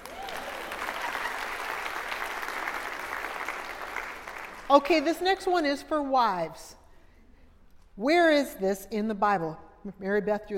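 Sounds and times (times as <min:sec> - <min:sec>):
audience applause: 0:00.0 - 0:04.7
speech: 0:04.7 - 0:06.8, 0:08.0 - 0:10.5.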